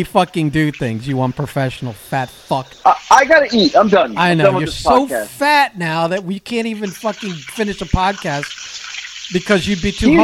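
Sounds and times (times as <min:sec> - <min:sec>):
chicken cutlets frying in a pan: 0:00.0 - 0:04.4, 0:06.5 - 0:10.2
speech: 0:00.0 - 0:10.2.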